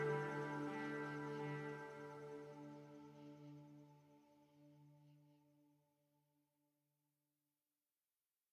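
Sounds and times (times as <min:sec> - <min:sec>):
festive massage sitar: 0:00.0 - 0:03.8.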